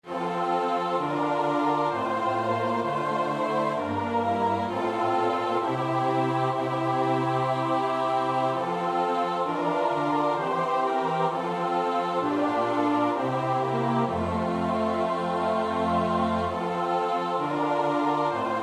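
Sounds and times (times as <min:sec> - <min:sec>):
soprano alto tenor bass voices: 0:00.1 - 0:18.6.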